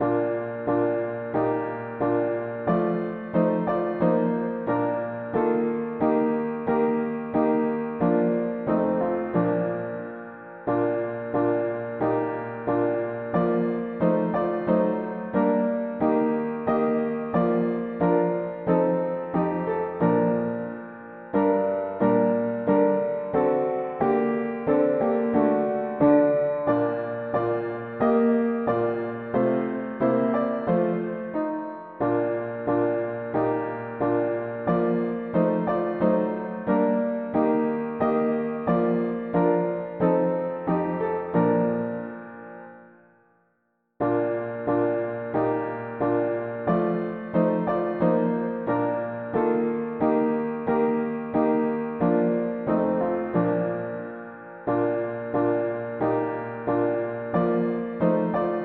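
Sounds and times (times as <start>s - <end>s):
mono piano playing hymns: 0.0s - 43.0s, 44.0s - 58.6s.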